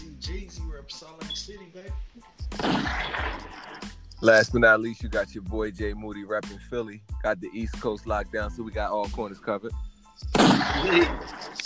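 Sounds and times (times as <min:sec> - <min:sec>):
speech: 0:00.2 - 0:11.6
gunshot sound effect: 0:02.5 - 0:03.9, 0:10.3 - 0:11.5.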